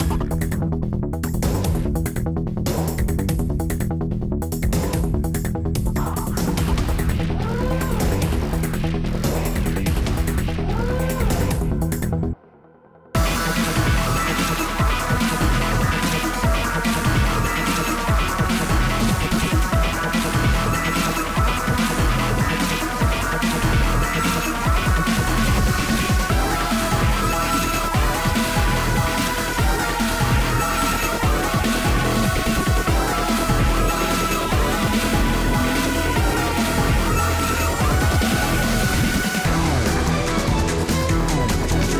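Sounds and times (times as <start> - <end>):
boss battle music loop: 0.0 - 12.4, 13.2 - 41.9.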